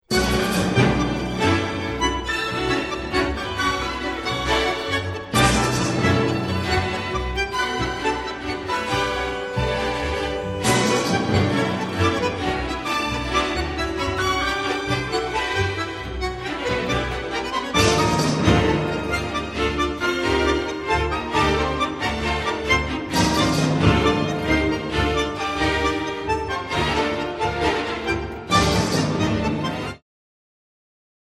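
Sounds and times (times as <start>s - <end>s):
bandoneon concerto: 0.1s - 30.0s.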